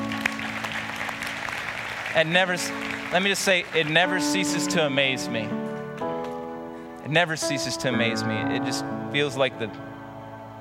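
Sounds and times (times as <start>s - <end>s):
crowd clapping: 0.0s - 4.8s
speech: 2.1s - 5.7s, 7.1s - 9.9s.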